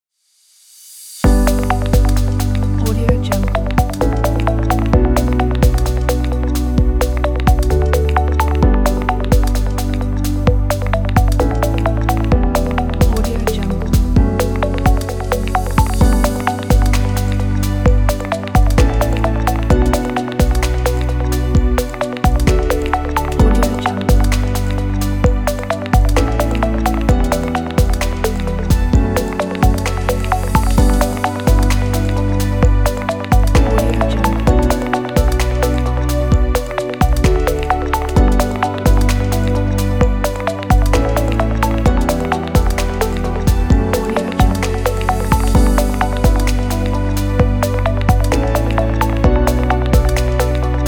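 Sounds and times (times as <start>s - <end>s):
calm ambient music: 1.2s - 50.8s.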